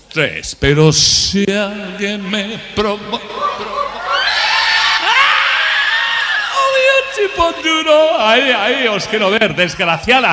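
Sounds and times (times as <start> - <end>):
speech: 0.2 - 3.8, 7.2 - 10.3
laughter: 2.2 - 6.9
audience shouting: 3.2 - 7.6
women and girls in an audience screaming: 3.3 - 6.9.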